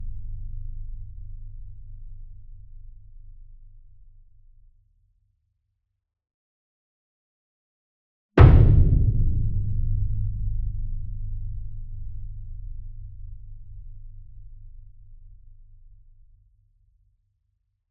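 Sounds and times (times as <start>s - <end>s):
40-inch concert bass drum hit with a soft beater: 8.4s - 15.1s.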